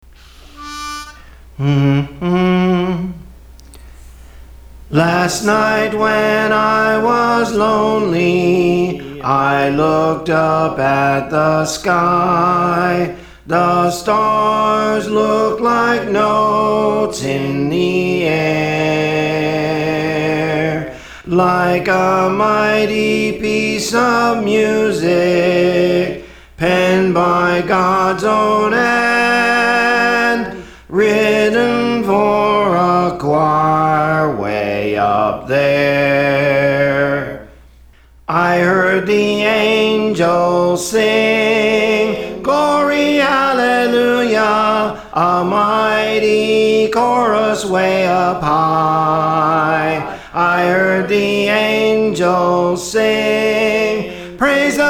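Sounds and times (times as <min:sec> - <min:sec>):
soprano singing: 0:00.0 - 0:37.6, 0:38.3 - 0:54.8.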